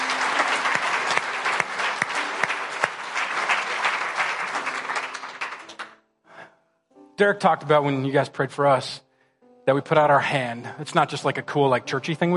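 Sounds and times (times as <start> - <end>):
audience applause: 0.0 - 6.0
speech: 7.2 - 9.0, 9.6 - 12.3.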